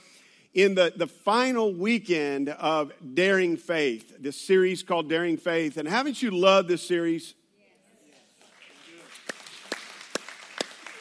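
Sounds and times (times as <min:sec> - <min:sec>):
speech: 0:00.5 - 0:07.4
few people clapping: 0:08.1 - 0:10.9.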